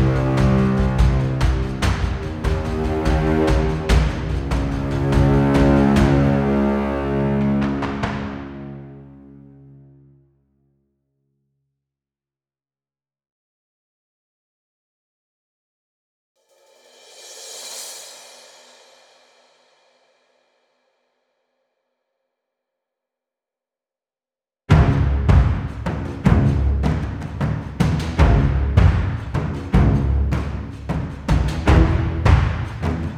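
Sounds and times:
combat music: 0.0 - 9.9, 24.7 - 33.1.

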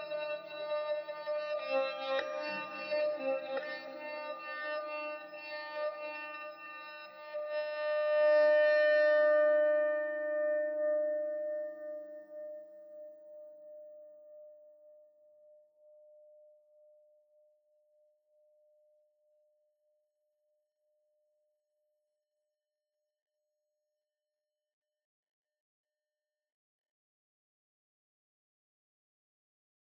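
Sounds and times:
bowed guitar: 0.0 - 11.6.

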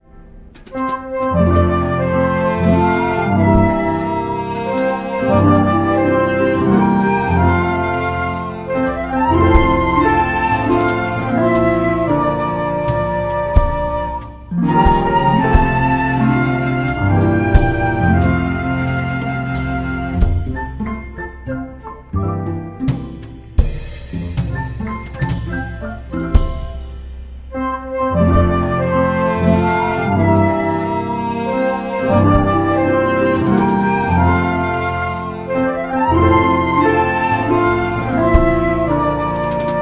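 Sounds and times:
song played on six instruments: 0.0 - 39.8.

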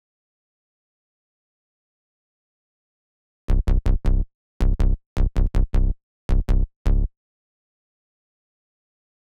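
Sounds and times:
bass: 3.5 - 7.1.

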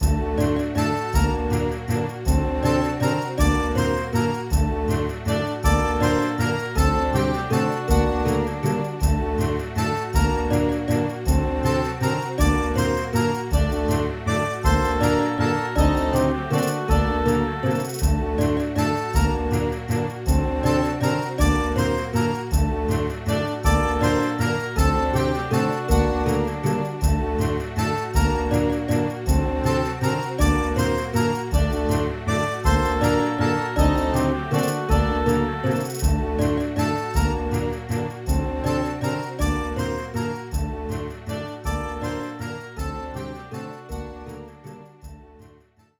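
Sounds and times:
happy event music: 0.0 - 45.5.

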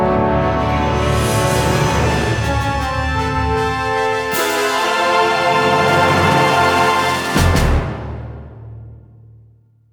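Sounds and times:
cinematic zombie win sound: 0.2 - 7.9.

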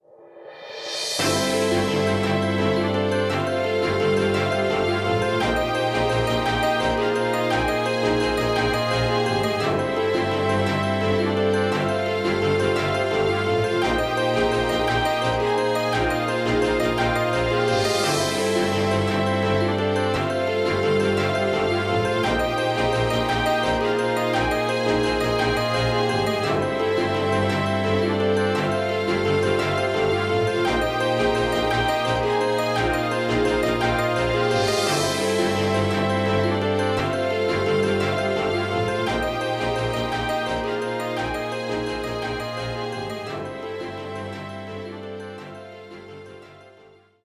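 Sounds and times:
happy background music: 0.9 - 47.0.

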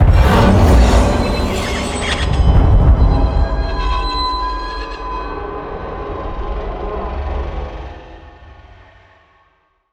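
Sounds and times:
round end sound: 0.0 - 4.8.

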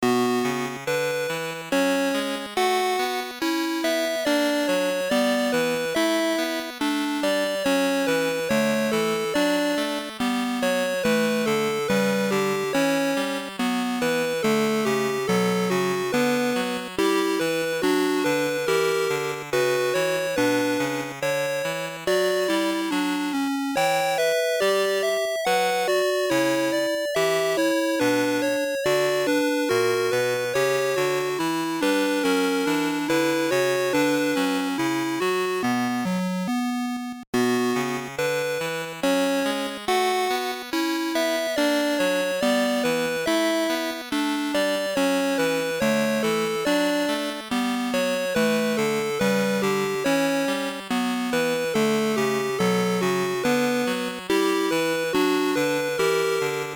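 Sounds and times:
WonderSwan Color background game music: 0.0 - 56.7.

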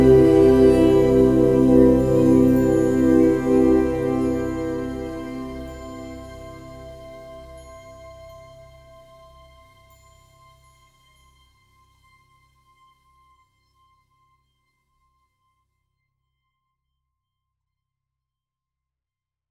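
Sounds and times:
beautiful magic moment music: 0.0 - 9.8
chime: 0.0 - 11.6.

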